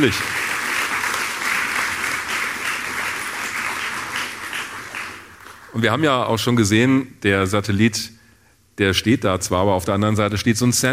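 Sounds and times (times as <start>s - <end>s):
speech: 0.0s - 0.4s, 5.8s - 8.2s, 8.8s - 10.9s
audience applause: 0.0s - 6.0s.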